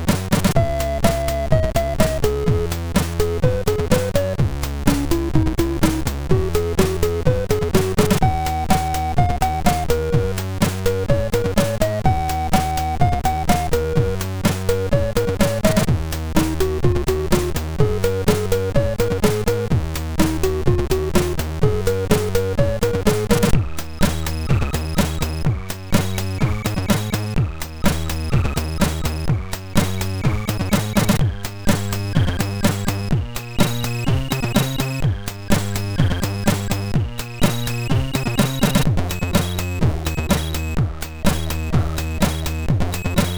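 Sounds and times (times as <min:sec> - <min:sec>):
MOS 6581R2 SID chip music: 0:00.2 - 0:43.3.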